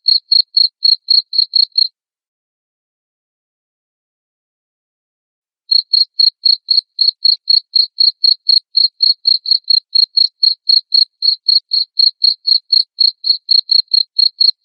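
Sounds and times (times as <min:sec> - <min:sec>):
cricket chirping: 0:00.0 - 0:01.9, 0:05.7 - 0:14.6.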